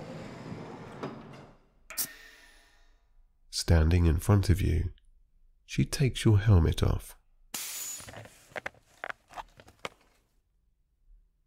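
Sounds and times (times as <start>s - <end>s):
door closing aboard a spacecraft: 0.0s - 1.8s
speech: 3.7s - 5.0s, 5.7s - 7.2s.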